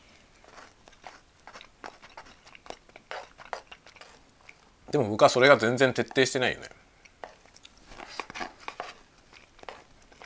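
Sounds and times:
person eating a convenience store bento: 0.3s - 4.8s, 7.0s - 10.2s
speech: 4.9s - 6.8s.

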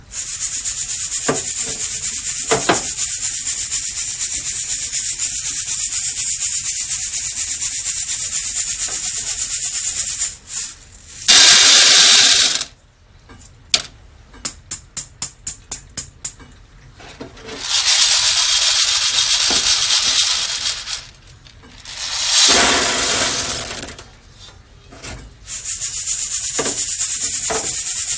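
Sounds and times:
steady high hiss of Guatemala SHB coffee beans being roasted: 0.1s - 12.7s, 17.4s - 24.0s, 25.5s - 28.1s
Guatemala SHB coffee beans clicking and tapping while roasting: 8.9s - 12.7s, 17.5s - 24.1s
louder rushing bursts: 17.6s - 23.9s.

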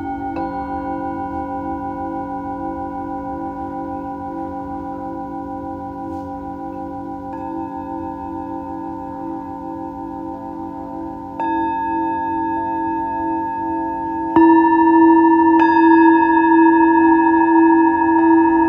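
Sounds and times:
Tibetan singing bowl ringing: 0.0s - 18.6s.

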